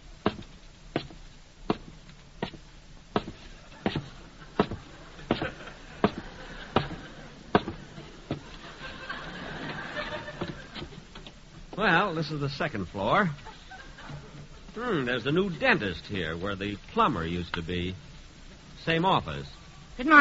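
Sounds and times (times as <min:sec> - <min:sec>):
footsteps hurrying up stairs: 0:00.2 - 0:11.9
laughter: 0:03.6 - 0:11.1, 0:13.1 - 0:15.9
speech: 0:11.8 - 0:13.5, 0:14.8 - 0:18.1, 0:18.8 - 0:20.2.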